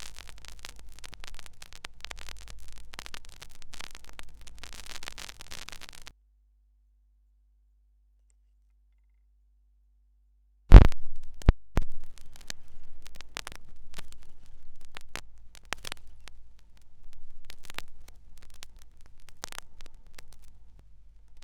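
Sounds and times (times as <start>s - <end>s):
vinyl record noises: 0.0s - 6.1s, 10.7s - 21.4s.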